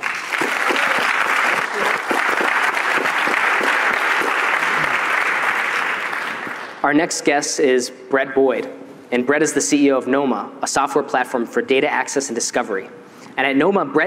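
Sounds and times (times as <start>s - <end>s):
audience applause: 0.0s - 6.8s
speech: 6.8s - 14.0s.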